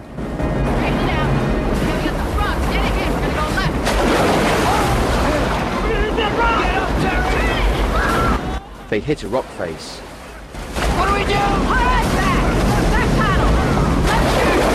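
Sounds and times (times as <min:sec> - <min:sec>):
boat smashing through churning river rapids: 0:00.0 - 0:14.7
churning river rapids roaring: 0:00.0 - 0:14.7
speech: 0:08.9 - 0:10.1.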